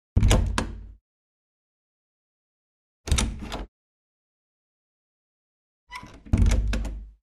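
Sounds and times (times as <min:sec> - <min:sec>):
wooden door opening and closing: 0:00.2 - 0:00.9, 0:03.1 - 0:03.7, 0:05.9 - 0:07.2.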